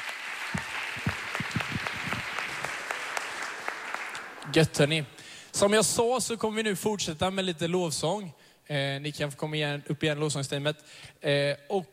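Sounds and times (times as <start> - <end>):
audience applause: 0.0 - 5.0
speech: 4.5 - 11.9.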